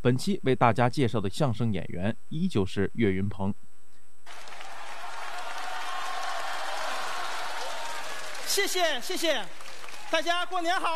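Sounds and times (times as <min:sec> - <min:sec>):
speech: 0:00.0 - 0:03.7, 0:08.5 - 0:10.9
audience applause: 0:04.3 - 0:10.6.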